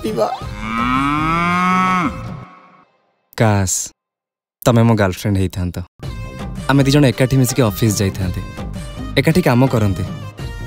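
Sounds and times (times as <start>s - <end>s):
speech: 0.0s - 2.2s, 3.4s - 4.0s, 4.6s - 6.1s, 6.7s - 8.6s, 9.2s - 10.2s
cow mooing: 0.4s - 2.8s.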